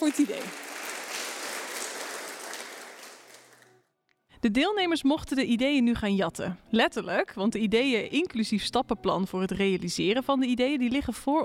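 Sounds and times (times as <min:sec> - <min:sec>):
speech: 0:00.0 - 0:00.7, 0:04.4 - 0:11.4
crowd clapping: 0:00.0 - 0:03.8.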